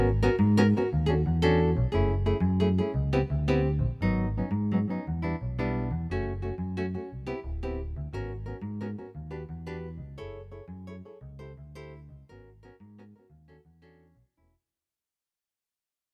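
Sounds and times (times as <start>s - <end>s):
guitar: 0.0s - 12.0s.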